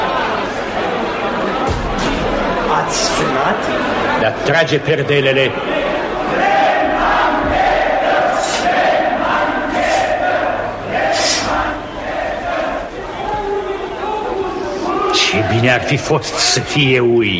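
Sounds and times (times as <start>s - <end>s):
angry crowd of dockworkers shouting: 0.0s - 17.1s
speech: 2.9s - 6.6s, 15.3s - 17.3s.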